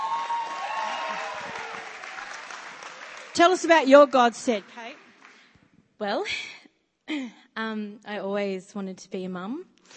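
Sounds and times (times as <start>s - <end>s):
audience clapping: 0.0s - 5.6s
speech: 3.4s - 4.8s, 6.0s - 9.9s.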